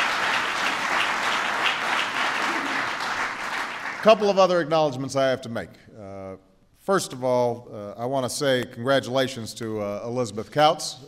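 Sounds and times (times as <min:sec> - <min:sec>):
large crowd applause: 0:00.0 - 0:04.4
speech: 0:04.0 - 0:11.0.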